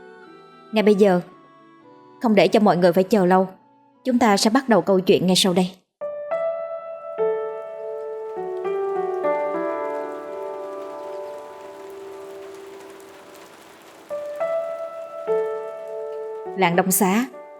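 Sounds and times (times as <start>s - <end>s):
speech: 0.7s - 1.3s, 2.2s - 5.8s, 16.6s - 17.5s
steady rain falling: 7.5s - 17.5s.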